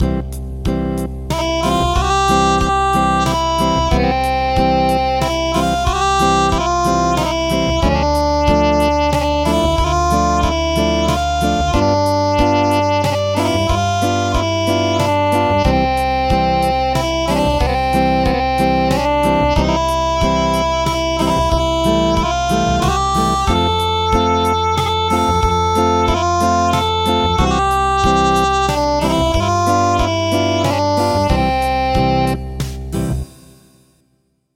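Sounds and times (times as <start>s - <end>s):
acoustic music: 0.0s - 33.8s.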